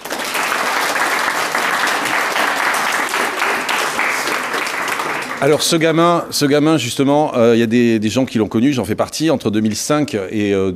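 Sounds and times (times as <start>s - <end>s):
audience applause: 0.0s - 6.0s
speech: 5.4s - 10.7s.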